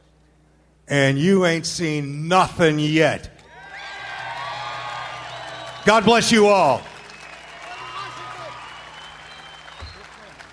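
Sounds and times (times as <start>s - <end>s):
speech: 0.9s - 3.3s, 5.8s - 6.9s
audience applause: 3.6s - 10.5s.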